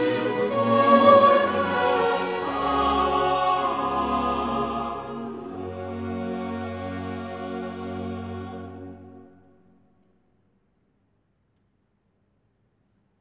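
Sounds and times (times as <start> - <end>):
full ensemble playing a hymn: 0.0 - 9.5.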